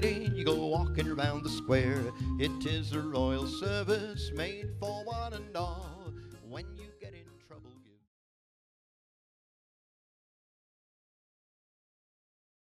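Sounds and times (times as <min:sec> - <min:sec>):
square dance music: 0:00.0 - 0:07.8
telephone-filtered vocal: 0:00.0 - 0:08.0.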